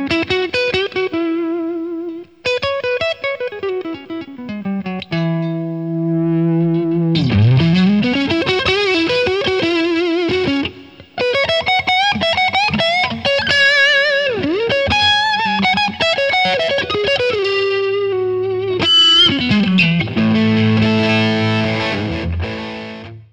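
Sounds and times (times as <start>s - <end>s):
overdriven guitar: 0.0s - 23.3s.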